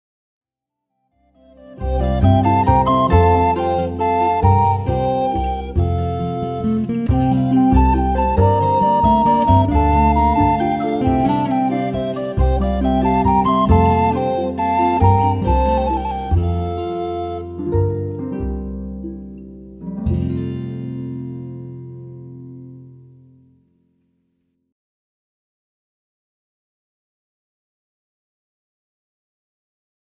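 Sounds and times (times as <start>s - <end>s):
minuet duet: 1.5s - 19.2s.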